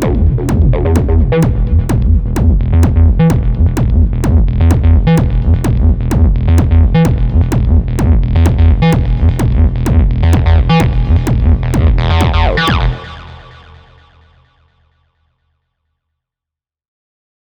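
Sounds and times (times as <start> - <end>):
Korg Wavestate synthesizer nasty 303 acid bassline: 0.0 - 14.4.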